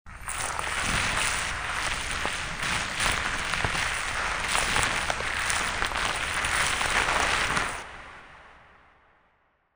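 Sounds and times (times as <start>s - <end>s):
alien walking: 0.4s - 8.0s.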